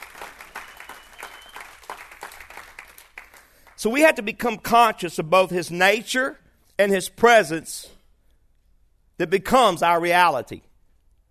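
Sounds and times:
audience clapping in praise: 0:00.0 - 0:03.8
speech: 0:03.8 - 0:08.0, 0:09.2 - 0:10.7.

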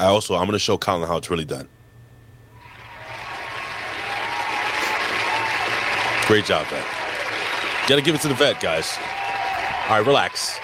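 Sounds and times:
speech: 0:00.0 - 0:01.8, 0:06.3 - 0:07.0, 0:07.9 - 0:09.2, 0:09.9 - 0:10.6
crowd applauding: 0:02.6 - 0:10.6.

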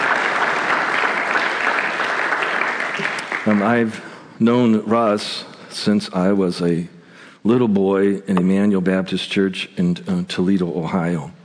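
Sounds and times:
audience applause: 0:00.0 - 0:04.0
speech: 0:03.4 - 0:11.4.

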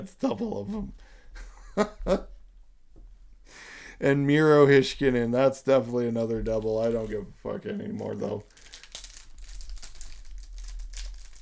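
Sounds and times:
speech: 0:00.0 - 0:02.3, 0:04.0 - 0:08.6
hockey trading card pack wrapper crinkling and tearing: 0:08.0 - 0:11.3.

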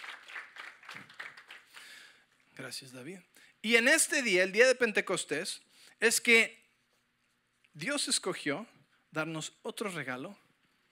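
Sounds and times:
room full of people applauding: 0:00.0 - 0:02.1
speech: 0:02.6 - 0:06.6, 0:07.8 - 0:10.4.

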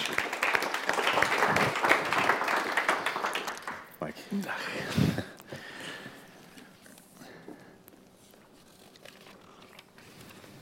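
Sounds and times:
applause: 0:00.0 - 0:04.2.

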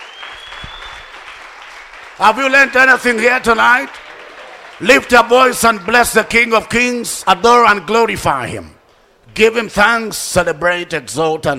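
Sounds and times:
crowd clapping: 0:00.0 - 0:06.8
speech: 0:02.2 - 0:04.0, 0:04.8 - 0:11.5.

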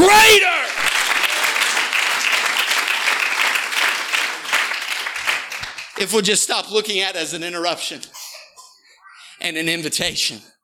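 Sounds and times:
audience applause: 0:00.0 - 0:06.3
speech: 0:06.0 - 0:08.2, 0:09.4 - 0:10.5.

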